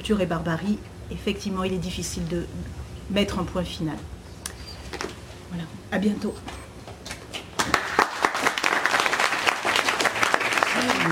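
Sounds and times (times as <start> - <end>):
speech: 0.0 - 4.2, 5.0 - 6.6
audience applause: 7.6 - 11.1.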